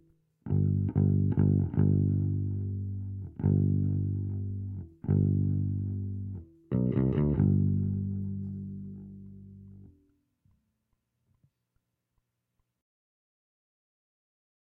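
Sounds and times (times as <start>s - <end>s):
bass: 0.0s - 10.2s.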